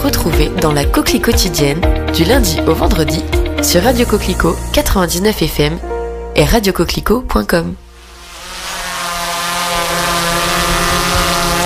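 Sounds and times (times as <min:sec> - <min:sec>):
speech: 0:00.1 - 0:07.8
drone flying overhead: 0:07.8 - 0:11.6.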